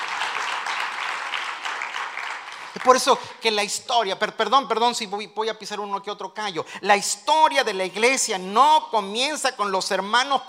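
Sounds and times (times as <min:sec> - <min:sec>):
church congregation applause during a service: 0:00.0 - 0:03.6
speech: 0:02.8 - 0:10.4.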